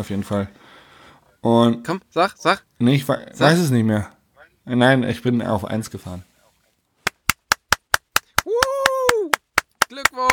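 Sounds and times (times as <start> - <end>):
speech: 0.0 - 0.7, 1.4 - 6.3
applause: 7.5 - 10.3.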